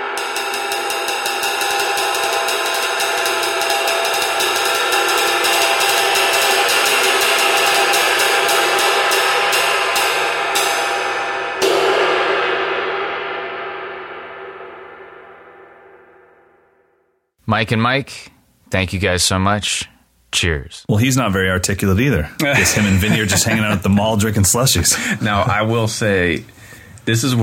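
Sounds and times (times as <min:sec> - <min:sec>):
22-inch ride cymbal being played: 0:00.2 - 0:16.1
speech: 0:17.6 - 0:27.4
laughter: 0:22.4 - 0:25.8.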